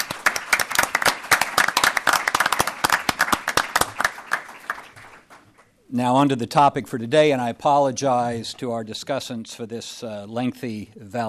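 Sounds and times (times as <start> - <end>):
audience round of applause: 0.0 - 5.4
speech: 5.9 - 11.2.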